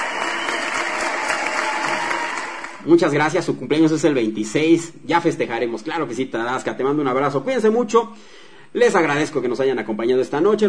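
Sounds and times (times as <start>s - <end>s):
audience applause at the close of a show: 0.0s - 2.9s
speech: 2.8s - 10.6s.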